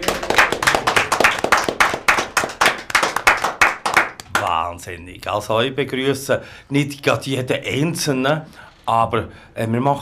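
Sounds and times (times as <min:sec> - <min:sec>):
studio audience applause: 0:00.0 - 0:04.2
speech: 0:04.8 - 0:10.0.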